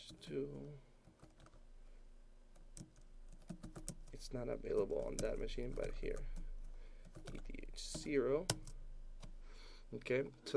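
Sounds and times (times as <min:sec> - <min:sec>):
speech: 0:00.1 - 0:00.9, 0:04.2 - 0:06.4, 0:07.2 - 0:08.7, 0:09.9 - 0:10.5
keystrokes on a computer keyboard typing the ethtool command in a Linux terminal: 0:02.6 - 0:06.4, 0:07.0 - 0:09.3.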